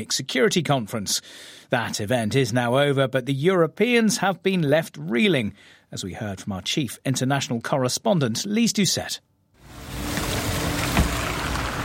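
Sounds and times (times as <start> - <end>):
speech: 0.0 - 10.0
luxury German cars pulling away from hotel entrance in Munich: 9.6 - 11.8.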